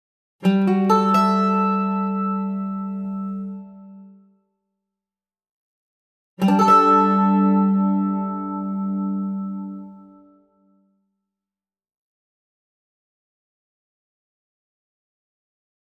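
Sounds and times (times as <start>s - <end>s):
mandolin playing: 0.4s - 4.2s, 6.4s - 10.4s.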